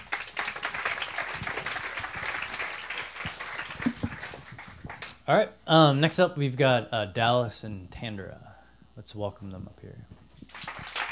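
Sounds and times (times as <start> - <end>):
audience applause thanking presenters: 0.0 - 5.1, 10.5 - 11.1
speech: 5.3 - 10.2.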